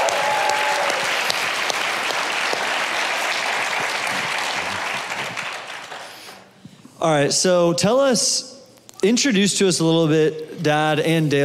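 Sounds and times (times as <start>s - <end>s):
audience applause and cheering: 0.0s - 6.6s
speech: 7.0s - 11.4s.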